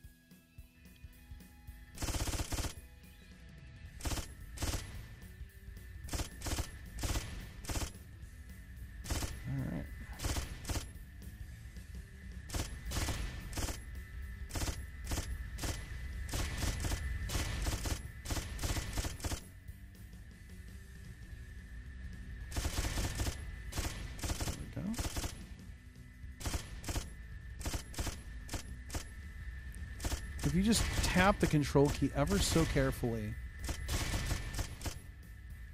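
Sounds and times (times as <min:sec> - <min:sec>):
gunfire in a shoot 'em up video game: 0:02.0 - 0:02.8, 0:04.0 - 0:05.1, 0:06.1 - 0:08.0, 0:09.0 - 0:09.4, 0:10.2 - 0:10.9, 0:12.5 - 0:13.8, 0:14.5 - 0:19.5, 0:22.5 - 0:25.4, 0:26.4 - 0:29.1, 0:30.0 - 0:35.0
speech: 0:30.6 - 0:33.4.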